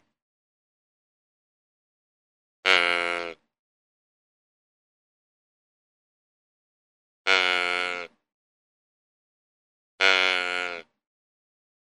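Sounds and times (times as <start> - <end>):
deer giving nasal bleats: 2.6 - 3.4, 7.3 - 8.2, 10.0 - 10.9.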